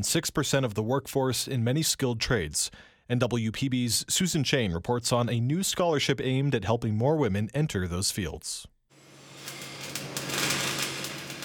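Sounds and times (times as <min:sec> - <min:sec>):
speech: 0:00.0 - 0:08.8
electric welding joining two pieces of metal in a community college welding shop: 0:08.9 - 0:11.4.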